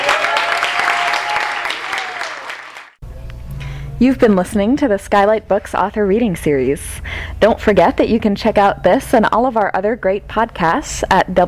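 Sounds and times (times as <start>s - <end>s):
audience round of applause: 0.0s - 3.0s
speech: 4.0s - 11.4s.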